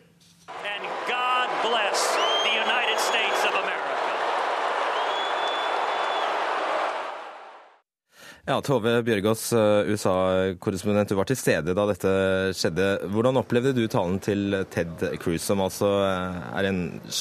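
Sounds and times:
convention crowd cheering, shouting and booing: 0.5 - 7.8
sharp whistles: 2.1 - 3.4, 4.9 - 6.4
speech: 8.5 - 17.1.

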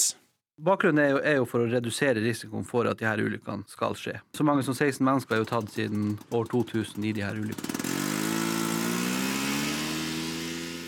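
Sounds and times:
speech: 0.6 - 7.8
snowmobile engine running: 5.3 - 10.8.

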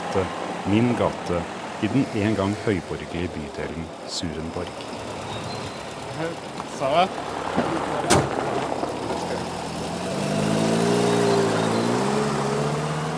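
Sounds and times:
speech: 0.1 - 5.0, 6.2 - 8.3
small turquoise bus rolling over cobblestones down Kogelsåsevei: 4.4 - 13.1.

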